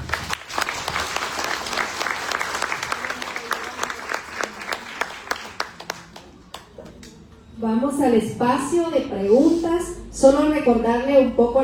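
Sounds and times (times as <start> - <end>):
audience applause: 0.0 - 6.7
speech: 7.6 - 11.6.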